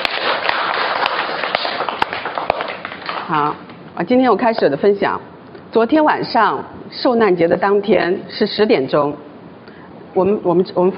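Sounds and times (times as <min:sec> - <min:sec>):
audience applause: 0:00.0 - 0:03.3
speech: 0:03.3 - 0:09.3, 0:10.1 - 0:10.9.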